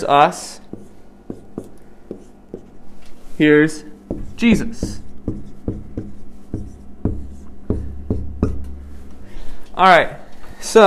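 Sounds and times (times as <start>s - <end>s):
speech: 0.0s - 0.6s, 3.4s - 5.0s, 9.8s - 10.8s
pen or marker strokes drawing a diagram: 0.7s - 2.8s, 4.1s - 7.6s.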